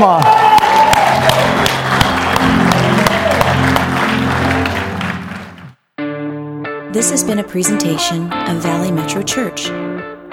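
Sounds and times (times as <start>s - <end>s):
speech: 0.0s - 0.4s, 7.0s - 10.0s
crowd roaring and cheering: 0.0s - 5.7s
scattered clapping: 0.0s - 5.8s.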